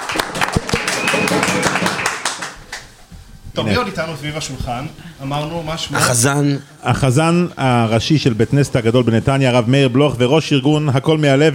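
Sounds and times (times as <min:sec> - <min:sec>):
audience applause: 0:00.0 - 0:03.0
speech: 0:03.6 - 0:11.5.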